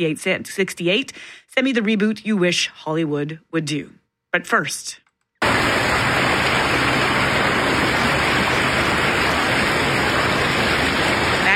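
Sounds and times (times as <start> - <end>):
speech: 0.0 - 5.8
floodwater rushing through the streets and over highways in Minnetonka: 5.4 - 11.5.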